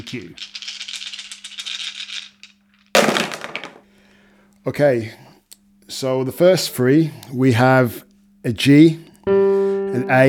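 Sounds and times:
speech: 0:00.0 - 0:00.5, 0:04.6 - 0:05.3, 0:05.9 - 0:09.4, 0:10.0 - 0:10.2
six dice rattling in a cup: 0:00.0 - 0:03.8
six dice clattering: 0:00.4 - 0:03.8.

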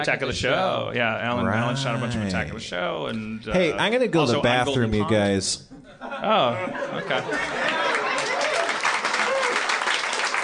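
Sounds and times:
speech: 0:00.0 - 0:07.8
laughter: 0:05.8 - 0:08.8
applause: 0:07.6 - 0:10.4.

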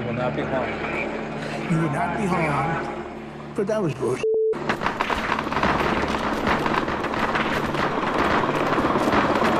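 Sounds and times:
speech: 0:00.2 - 0:01.1, 0:01.7 - 0:03.0, 0:03.6 - 0:04.3
hail of gunfire: 0:04.7 - 0:09.5.

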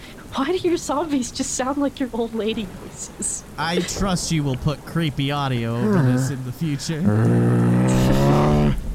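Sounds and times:
speech: 0:00.5 - 0:08.7
voice imitating a motorcycle engine: 0:05.8 - 0:08.8.

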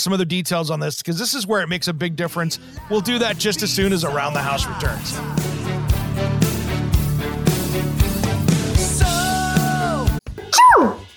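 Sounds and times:
speech: 0:00.0 - 0:05.6
upbeat music with a steady beat: 0:02.3 - 0:11.1.

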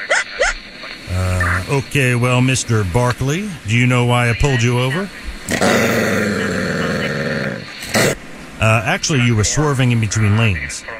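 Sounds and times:
speech: 0:01.7 - 0:06.1, 0:08.7 - 0:10.9
dog growling: 0:05.5 - 0:08.2.

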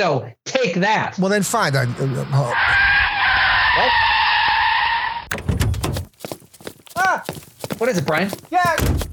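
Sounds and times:
speech: 0:00.0 - 0:02.9, 0:03.8 - 0:04.0, 0:07.8 - 0:09.0
minivan tires screeching while skidding: 0:01.8 - 0:05.3.

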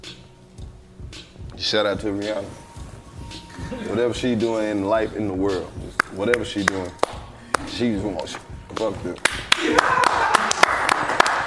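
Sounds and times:
speech: 0:01.6 - 0:02.6, 0:03.7 - 0:07.0, 0:07.8 - 0:10.1
person clapping: 0:06.0 - 0:07.8, 0:09.2 - 0:11.4.

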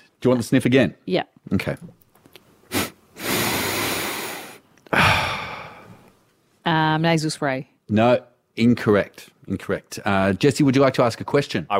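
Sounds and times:
speech: 0:00.2 - 0:02.0, 0:06.6 - 0:11.7
person making an exaggerated sniffing noise: 0:02.7 - 0:06.1.

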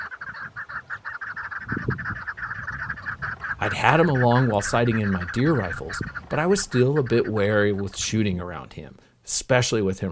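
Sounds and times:
low rumbling noise: 0:03.1 - 0:09.0
chukar partridges calling with raspy clucking: 0:03.2 - 0:08.9
speech: 0:03.7 - 0:10.1.

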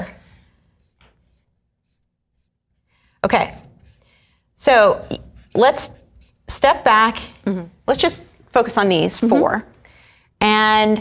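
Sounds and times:
pen or pencil writing on paper: 0:00.5 - 0:07.3
speech: 0:03.2 - 0:03.7, 0:04.6 - 0:09.7, 0:10.5 - 0:10.9.

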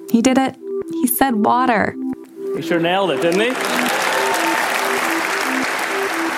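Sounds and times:
speech: 0:00.1 - 0:03.8
audience applause: 0:03.0 - 0:06.3.

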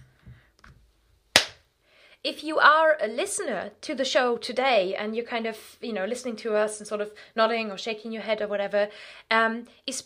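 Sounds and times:
single hand clap: 0:01.4 - 0:01.6
speech: 0:02.2 - 0:10.0.

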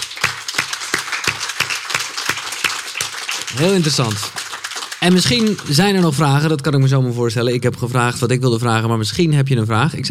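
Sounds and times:
audience applause: 0:00.0 - 0:07.0
speech: 0:03.6 - 0:04.4, 0:05.0 - 0:10.1.

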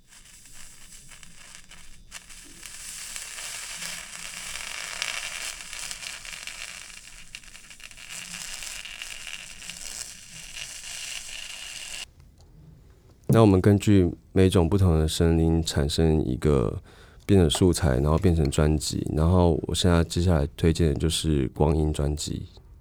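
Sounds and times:
soldering stained glass: 0:00.0 - 0:12.1, 0:17.2 - 0:20.2
speech: 0:13.4 - 0:22.6.

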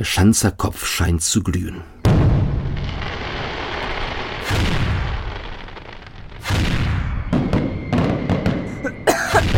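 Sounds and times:
speech: 0:00.0 - 0:02.0
fireworks rockets exploding: 0:02.0 - 0:09.5.

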